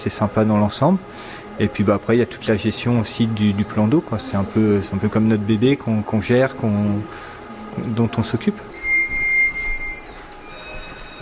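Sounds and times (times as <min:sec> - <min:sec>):
speech: 0:00.0 - 0:08.7
port gate closing warning bell: 0:08.7 - 0:11.2.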